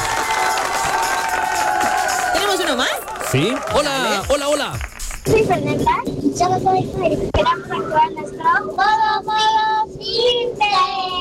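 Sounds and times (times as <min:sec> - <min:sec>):
audience applause: 0:00.0 - 0:05.3
speech: 0:02.7 - 0:11.1.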